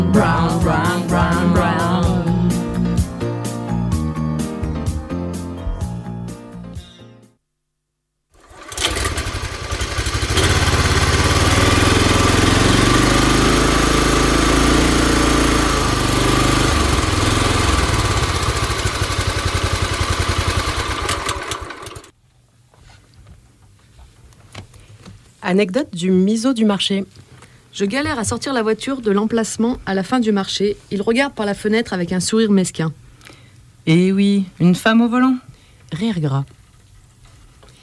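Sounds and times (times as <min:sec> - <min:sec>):
music: 0:00.0 - 0:07.4
old tractor engine running: 0:08.4 - 0:22.1
speech: 0:25.5 - 0:33.0, 0:33.8 - 0:36.6.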